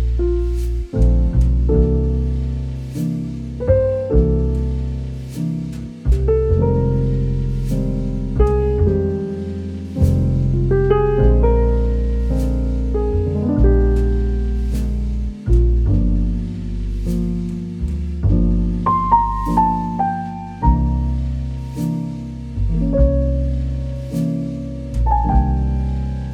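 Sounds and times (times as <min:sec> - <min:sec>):
relaxing romantic jazz podcast music: 0:00.0 - 0:26.3.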